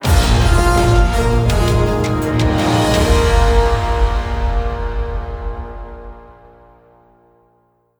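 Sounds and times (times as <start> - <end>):
endgame win music sting: 0.0 - 7.0.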